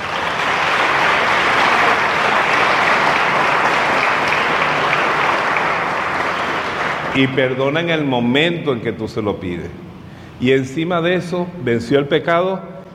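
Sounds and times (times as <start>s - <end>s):
large audience applause: 0.0s - 7.6s
speech: 7.2s - 9.8s, 10.4s - 12.7s.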